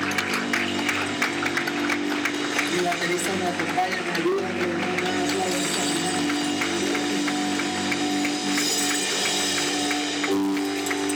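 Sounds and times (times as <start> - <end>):
audience applauding: 0.0 - 11.1
speech: 2.8 - 5.6.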